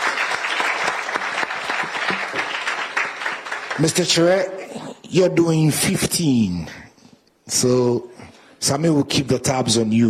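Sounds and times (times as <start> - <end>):
audience clapping: 0.0 - 4.7
speech: 3.8 - 6.8, 7.5 - 10.0.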